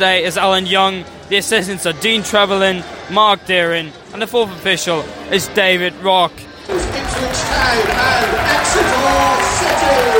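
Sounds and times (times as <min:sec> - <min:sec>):
speech: 0:00.0 - 0:06.5, 0:07.3 - 0:10.1
football crowd applauding and cheering teams coming out: 0:06.7 - 0:10.1.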